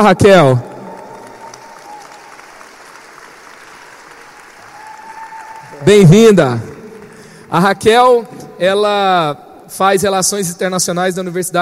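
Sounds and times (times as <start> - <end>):
speech: 0.0 - 0.7, 5.8 - 6.7, 7.5 - 11.5
audience applause: 0.0 - 7.7.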